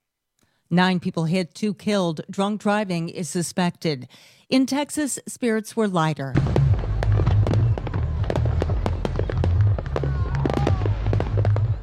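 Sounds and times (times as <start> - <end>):
speech: 0.7 - 6.7
fireworks over Austin: 6.3 - 11.8.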